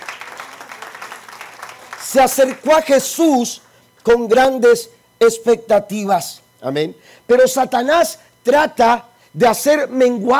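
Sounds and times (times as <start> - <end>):
audience applauding: 0.0 - 2.7
speech: 2.1 - 10.3.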